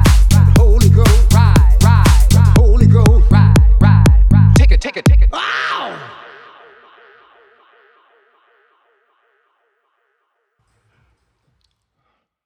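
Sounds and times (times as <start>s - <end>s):
bass beat mashup: 0.0s - 5.4s.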